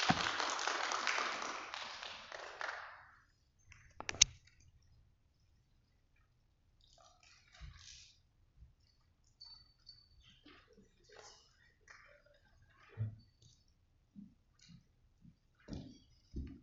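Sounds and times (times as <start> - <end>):
audience applause: 0.0 - 3.1.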